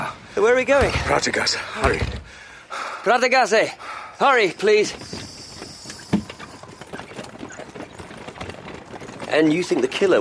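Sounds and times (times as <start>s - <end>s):
speech: 0.4s - 5.2s, 9.3s - 10.1s
clip-clop of a horse-drawn hackney cab trotting: 4.5s - 10.1s.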